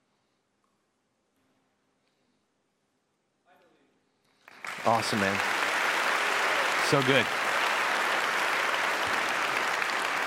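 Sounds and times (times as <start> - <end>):
crowd applauding: 4.4 - 10.2
speech: 4.8 - 5.5, 6.9 - 7.4.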